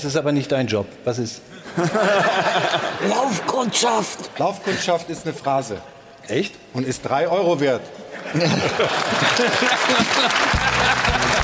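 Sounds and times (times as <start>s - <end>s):
speech: 0.0s - 11.4s
laughter: 1.6s - 4.2s, 8.1s - 11.4s
hand clapping: 9.0s - 11.4s.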